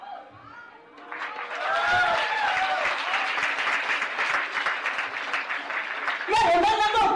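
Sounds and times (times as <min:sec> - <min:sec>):
audience applause: 0:01.0 - 0:07.0
cheers and whoops: 0:01.5 - 0:03.4.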